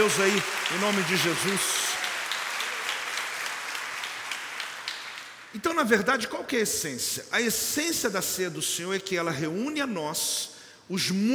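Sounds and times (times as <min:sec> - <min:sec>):
speech: 0:00.0 - 0:01.9, 0:05.5 - 0:11.3
audience applause: 0:00.0 - 0:05.6.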